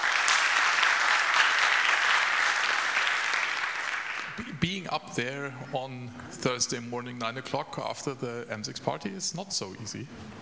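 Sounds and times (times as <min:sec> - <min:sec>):
audience applause: 0:00.0 - 0:04.6
speech: 0:04.4 - 0:10.4.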